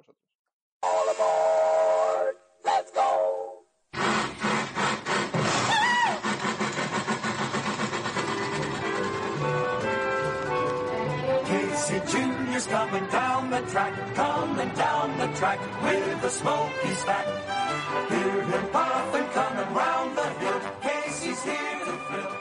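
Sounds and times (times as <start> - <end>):
Dumbo train ride whistle at Disneyland: 0.8 - 2.4
train engine chugging: 4.0 - 22.3.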